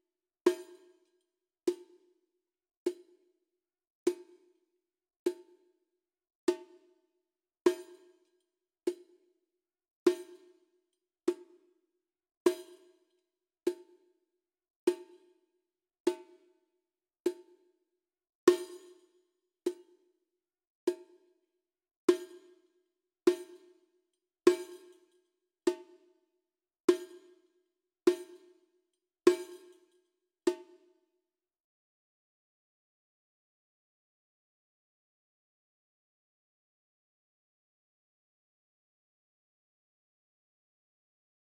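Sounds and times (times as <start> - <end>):
percussion: 0.0 - 2.2, 2.8 - 3.4, 4.1 - 4.6, 5.3 - 5.8, 6.5 - 9.4, 10.0 - 11.8, 12.4 - 14.2, 14.8 - 17.8, 18.4 - 20.2, 20.9 - 31.2.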